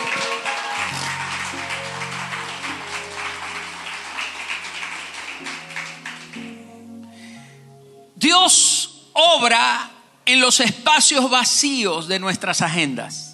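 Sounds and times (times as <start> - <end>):
crowd applause: 0.0 - 6.8
sustained low keyboard chords: 0.0 - 9.1
speech: 9.4 - 13.2.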